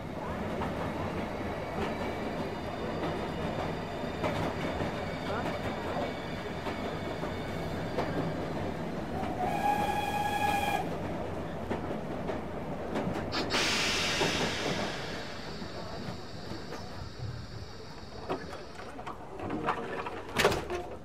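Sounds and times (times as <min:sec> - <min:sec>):
train at a railway station: 0:00.0 - 0:21.0.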